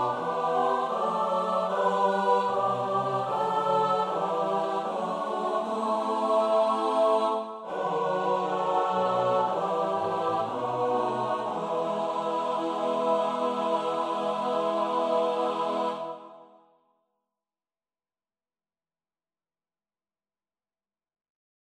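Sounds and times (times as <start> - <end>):
soprano alto tenor bass voices: 0.0 - 16.2.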